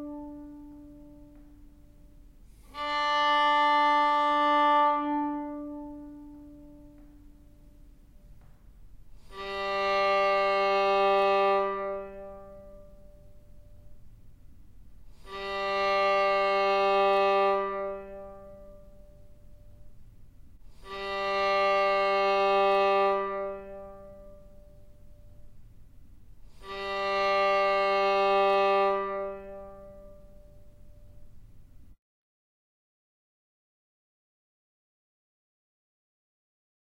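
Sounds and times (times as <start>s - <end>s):
violin tuning notes E A D G: 0.0s - 14.2s, 15.0s - 20.0s, 20.7s - 25.6s, 26.4s - 31.5s.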